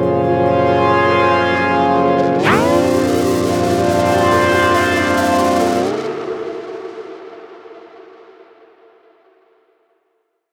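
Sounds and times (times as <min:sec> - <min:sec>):
evil wavetable synth: 0:00.0 - 0:08.2.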